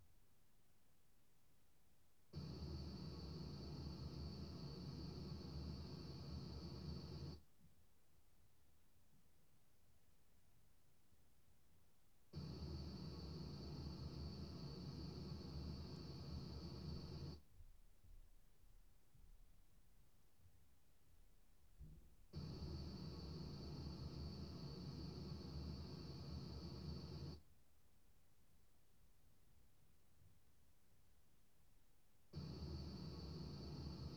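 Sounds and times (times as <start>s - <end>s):
white noise in an announcer booth: 2.4s - 7.4s, 12.4s - 17.4s, 22.4s - 27.4s, 32.4s - 34.1s.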